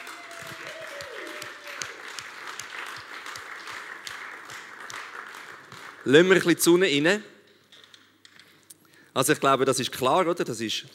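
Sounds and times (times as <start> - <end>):
audience applause: 0.0 - 6.4
speech: 6.0 - 7.3, 9.2 - 10.9.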